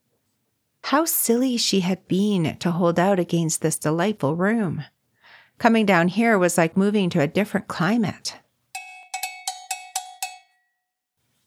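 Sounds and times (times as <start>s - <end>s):
speech: 0.9s - 5.0s, 5.6s - 8.4s
breakfast bell ringing: 8.8s - 10.8s.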